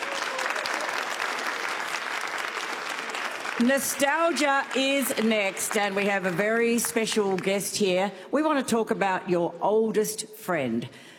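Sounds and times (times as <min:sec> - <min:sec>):
studio audience clapping: 0:00.0 - 0:07.7
speech: 0:03.6 - 0:11.1.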